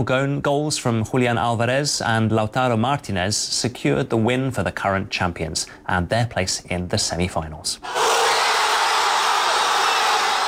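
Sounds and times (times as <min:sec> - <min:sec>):
speech: 0:00.0 - 0:08.2
fans in Buenos Aires cheering at final whistle: 0:07.8 - 0:10.4.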